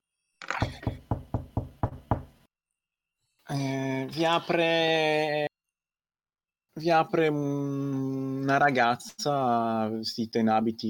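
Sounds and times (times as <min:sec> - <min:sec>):
knocking on a door: 0:00.8 - 0:02.4
speech: 0:03.5 - 0:05.5, 0:06.8 - 0:10.8.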